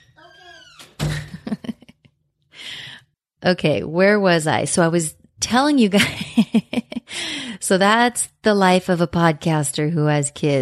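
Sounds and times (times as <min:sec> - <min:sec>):
door shutting: 0:00.0 - 0:01.7
speech: 0:03.4 - 0:06.8, 0:07.7 - 0:10.5.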